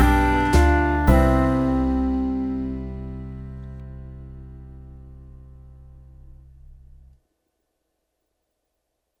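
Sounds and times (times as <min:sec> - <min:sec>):
romantic drinking waltz: 0:00.0 - 0:05.3.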